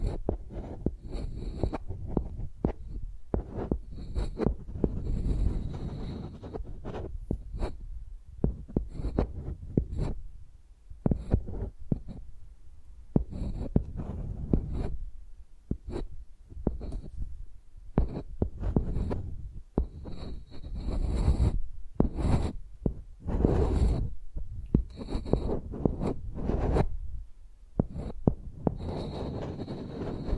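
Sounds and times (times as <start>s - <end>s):
microphone dragged like a pencil, rubbing strokes: 0.0s - 10.3s, 13.2s - 15.0s, 18.0s - 27.2s, 27.8s - 30.3s
scratchy hiss: 0.0s - 10.3s, 11.0s - 12.3s, 13.1s - 15.1s, 15.7s - 27.0s, 27.8s - 30.3s.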